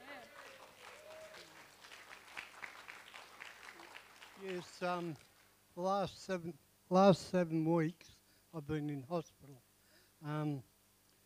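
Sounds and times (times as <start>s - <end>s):
audience cheering: 0.0s - 5.3s
speech: 4.4s - 10.7s.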